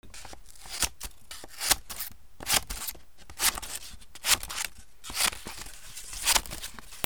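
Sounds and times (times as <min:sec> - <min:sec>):
paper rustling: 0:00.1 - 0:07.0.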